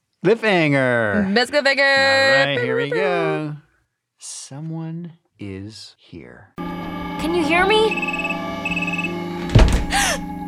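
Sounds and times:
speech: 0.2 - 3.6, 4.2 - 6.6, 7.2 - 8.8
laughter: 1.2 - 3.5
squealing tone: 7.4 - 10.2
door slamming: 9.4 - 10.2.

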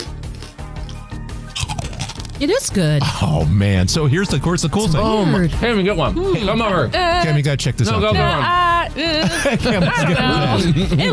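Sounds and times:
crunching on a snack: 0.0 - 2.4
speech: 2.4 - 11.1
laughter: 7.9 - 11.1.

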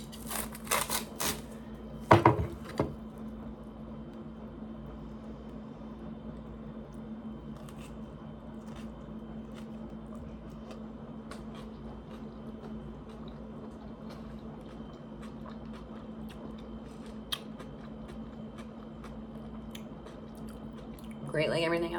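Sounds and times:
constant low hum: 0.0 - 15.2
person eating pizza, biting and chewing: 8.6 - 21.2
speech: 21.4 - 21.9.

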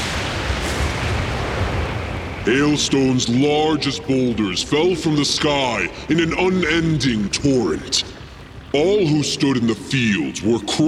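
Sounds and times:
thunder and lightning strike effect: 0.0 - 3.8
speech: 2.4 - 8.1, 8.7 - 10.8.

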